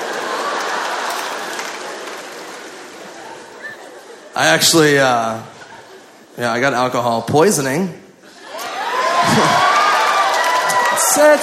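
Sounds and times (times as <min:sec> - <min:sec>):
audience cheering and applause: 0:00.0 - 0:04.2, 0:08.3 - 0:11.4
laughter: 0:00.0 - 0:06.4, 0:08.3 - 0:10.0
speech: 0:04.4 - 0:05.5, 0:06.4 - 0:08.0, 0:09.3 - 0:09.7, 0:11.2 - 0:11.4.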